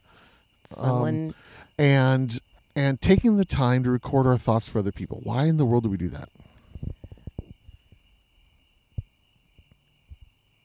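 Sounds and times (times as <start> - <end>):
crickets chirping: 0.0 - 10.6
speech: 0.8 - 6.9
soft low thumps and knocks: 6.7 - 7.8.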